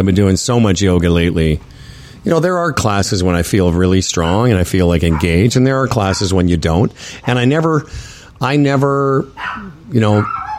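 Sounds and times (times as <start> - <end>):
speech: 0.0 - 10.4
two dogs barking at the door of a home studio: 4.1 - 7.7, 9.3 - 10.5.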